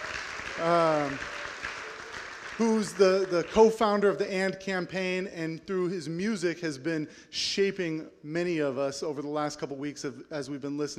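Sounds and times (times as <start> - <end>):
audience clapping: 0.0 - 4.3
speech: 0.6 - 1.4, 2.6 - 10.9.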